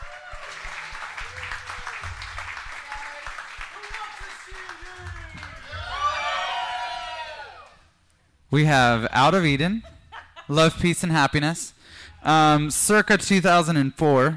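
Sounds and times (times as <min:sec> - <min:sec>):
cheers and high whoops: 0:00.0 - 0:02.1, 0:05.0 - 0:07.8
crowd applause: 0:00.0 - 0:07.8
voices shouting: 0:05.6 - 0:07.7
speech: 0:08.5 - 0:09.9, 0:10.5 - 0:14.3.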